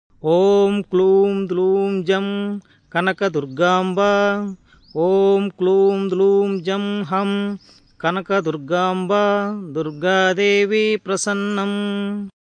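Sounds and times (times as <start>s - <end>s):
mantra: 0.2s - 12.3s.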